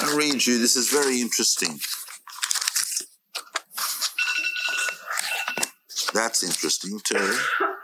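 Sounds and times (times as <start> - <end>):
speech: 0.2 - 2.0, 6.2 - 7.8
alarm ringing with electronic tone: 4.2 - 5.6.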